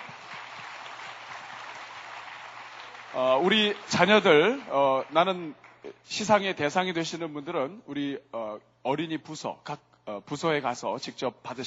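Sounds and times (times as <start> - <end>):
audience applause: 0.0 - 5.8
speech: 3.1 - 11.6.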